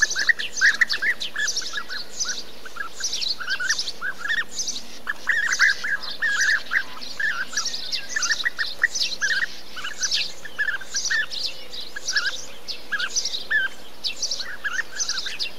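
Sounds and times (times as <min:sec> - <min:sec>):
bee-eater flock calls: 0:00.0 - 0:15.5.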